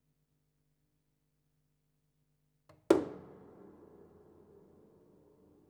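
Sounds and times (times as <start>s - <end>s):
thump on piano body with pedal: 2.7s - 5.6s.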